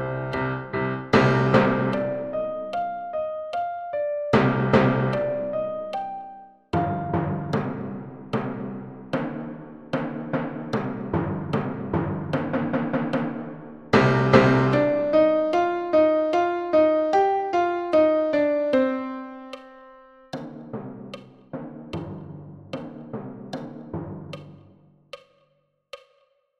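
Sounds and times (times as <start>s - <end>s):
timpani: 0.0s - 3.2s, 4.4s - 6.2s, 6.8s - 24.8s
piano: 0.0s - 9.4s, 10.7s - 20.6s.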